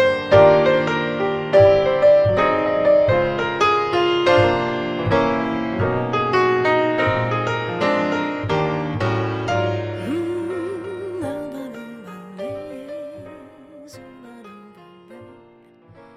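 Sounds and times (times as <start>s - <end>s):
piano: 0.0s - 16.1s
voice: 10.0s - 14.8s.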